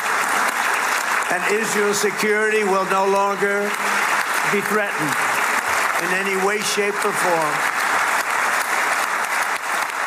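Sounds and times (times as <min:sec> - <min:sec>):
applause in a parliament chamber: 0:00.0 - 0:10.0
speech: 0:01.3 - 0:05.3, 0:06.0 - 0:07.8.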